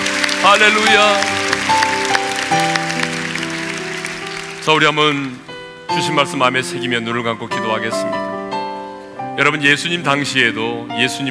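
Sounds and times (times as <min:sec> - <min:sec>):
audience applauding: 0:00.0 - 0:05.6
sustained keyboard or organ chords: 0:00.0 - 0:11.2
speech: 0:00.4 - 0:02.7, 0:04.7 - 0:08.3, 0:09.4 - 0:11.2.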